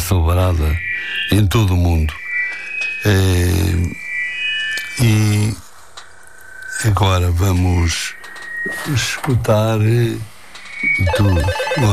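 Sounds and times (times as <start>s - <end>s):
speech: 0.1s - 2.2s, 3.0s - 4.0s, 5.0s - 5.6s, 6.8s - 11.9s
telephone ringing on a radio call-in line: 11.0s - 11.9s.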